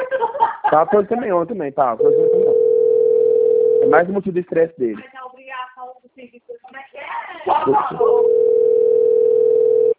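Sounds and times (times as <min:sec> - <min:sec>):
laughter: 0:00.0 - 0:01.3, 0:07.5 - 0:08.2
speech: 0:00.7 - 0:02.4, 0:03.8 - 0:05.2, 0:07.6 - 0:08.4
telephone dial tone: 0:02.0 - 0:03.9, 0:08.2 - 0:09.9.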